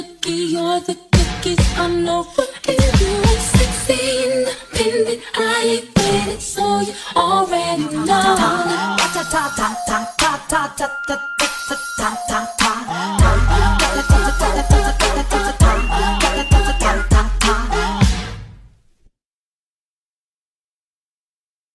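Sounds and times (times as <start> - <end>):
hip hop music: 1.2 - 18.5.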